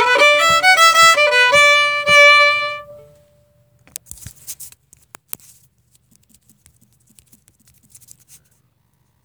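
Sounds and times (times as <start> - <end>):
fiddle playing a jig: 0.0 - 3.2.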